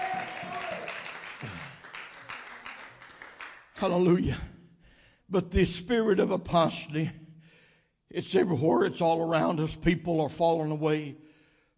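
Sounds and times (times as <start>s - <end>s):
audience clapping hands in praise: 0.0s - 4.1s
speech: 3.8s - 4.5s, 5.3s - 7.2s, 8.1s - 11.2s.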